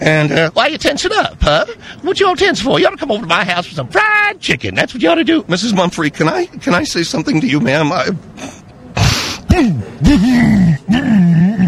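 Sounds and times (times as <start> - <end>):
speech: 0.0 - 8.6, 9.6 - 11.6
exaggerated gagging throat clearing: 8.4 - 11.6.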